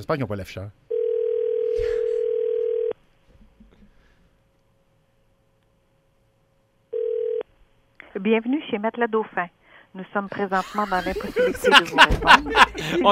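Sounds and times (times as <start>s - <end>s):
speech: 0.0s - 0.8s, 8.2s - 13.1s
phone ringback tone on an outgoing call: 0.9s - 3.0s, 6.9s - 7.4s
laughter: 10.4s - 13.1s.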